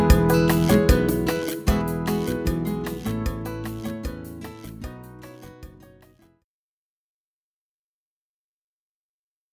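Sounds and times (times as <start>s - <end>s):
salsa guitar: 0.0s - 6.3s.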